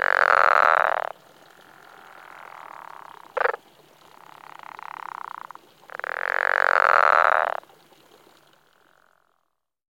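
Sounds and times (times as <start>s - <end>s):
pickerel frog giving snoring croaks: 0.0s - 3.6s, 4.2s - 7.6s.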